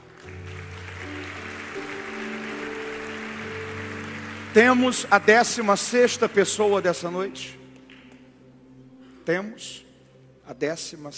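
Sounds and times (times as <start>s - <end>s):
audience applause: 0.0s - 7.0s
speech: 4.6s - 7.6s, 9.3s - 9.8s, 10.5s - 11.1s.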